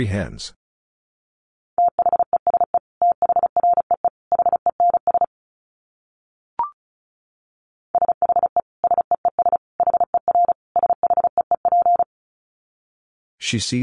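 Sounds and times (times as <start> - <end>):
Morse code tones at 35 words per minute: 1.8 - 5.3, 8.0 - 12.1.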